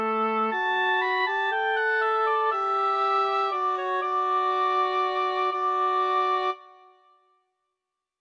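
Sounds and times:
oboe: 0.0s - 7.0s
English horn: 0.5s - 6.9s.

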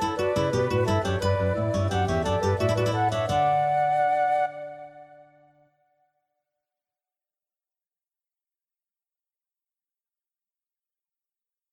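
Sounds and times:
guitars: 0.0s - 4.0s
flutes: 0.0s - 5.9s.

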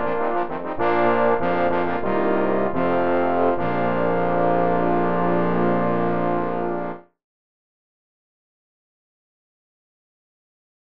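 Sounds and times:
fanfare for trombone octet: 0.0s - 7.0s.

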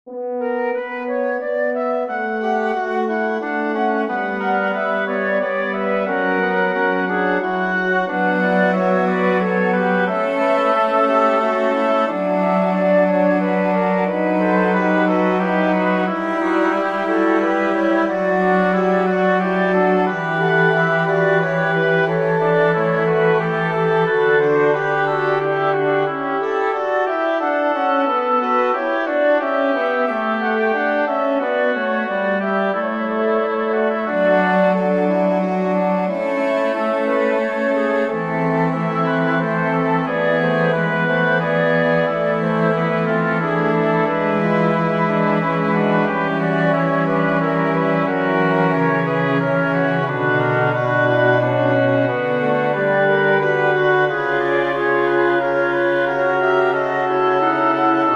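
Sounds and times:
cello and winds playing: 0.1s - 58.1s.

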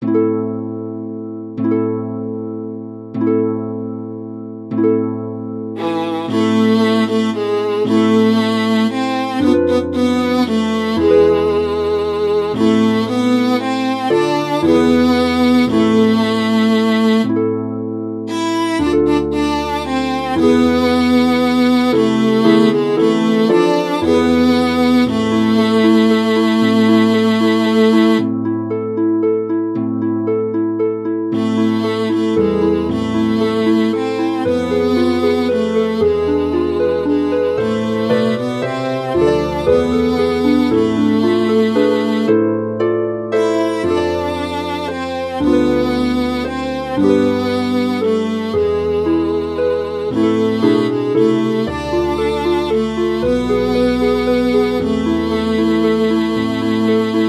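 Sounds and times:
harp: 0.0s - 57.2s
viola: 0.0s - 57.2s.

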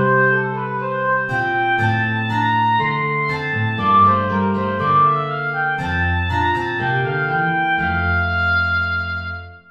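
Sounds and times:
bourree play-along backing music without guitar: 0.0s - 9.6s.

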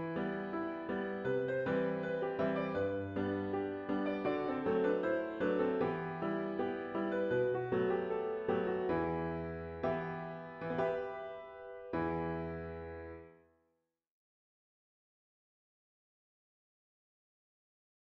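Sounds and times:
piano: 0.0s - 13.6s.

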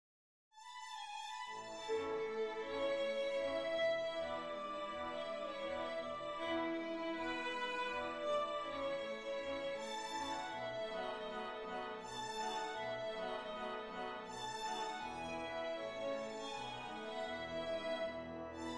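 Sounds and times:
string quintet minuet: 0.6s - 18.7s.

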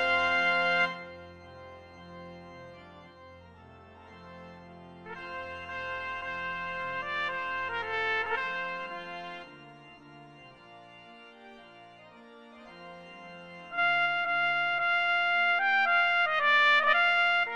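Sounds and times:
trumpet piece: 0.0s - 1.6s, 5.0s - 10.5s, 13.6s - 17.5s.

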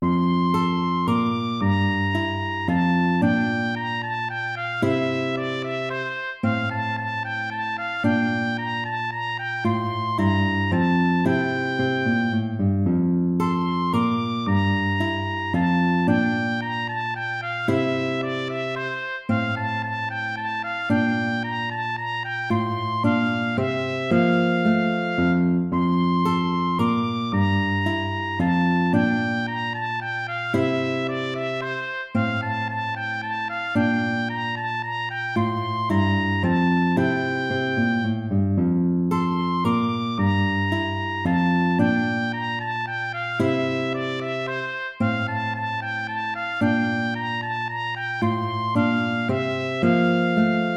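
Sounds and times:
minuet in a major key: 0.0s - 50.7s.

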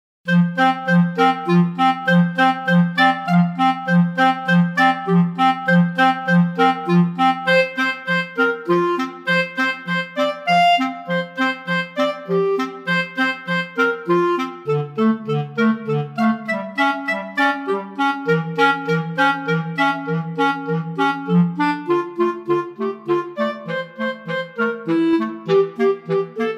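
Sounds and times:
clarinet duet: 0.3s - 26.5s.

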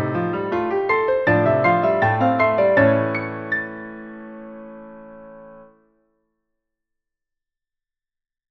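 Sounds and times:
march music: 0.1s - 4.3s.

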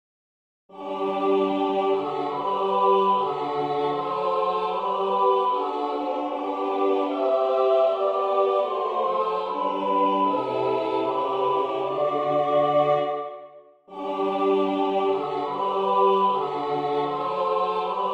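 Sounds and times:
national anthem music: 0.8s - 13.4s, 14.0s - 18.1s.

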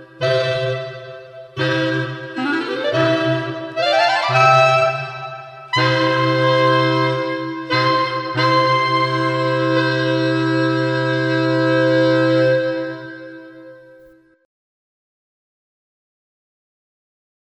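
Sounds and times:
fanfare for clarinet quartet: 0.0s - 13.8s.

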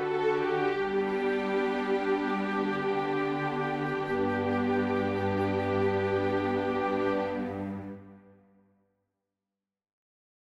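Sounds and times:
wind and string ensemble: 0.0s - 8.4s.

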